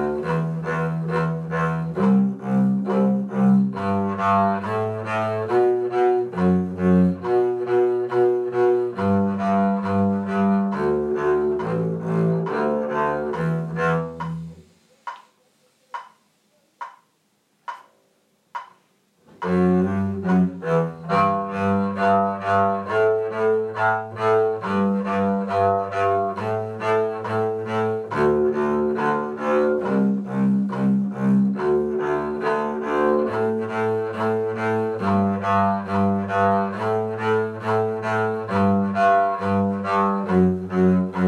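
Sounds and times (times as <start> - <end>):
bass: 0.0 - 14.8, 19.4 - 41.2.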